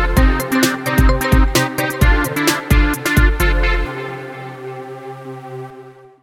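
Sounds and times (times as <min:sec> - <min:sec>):
old school breakbeat ringtone: 0:00.2 - 0:03.9.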